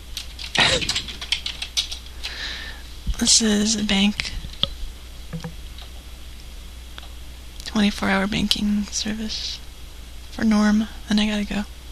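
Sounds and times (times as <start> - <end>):
speech: 3.2 - 4.4, 7.8 - 9.6, 10.4 - 11.8
sampling keyboard hit unevenly off rhythm: 5.3 - 5.6.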